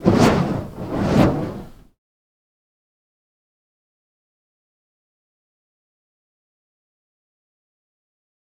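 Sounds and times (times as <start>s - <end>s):
fire staff fire sound effects: 0.0s - 1.9s.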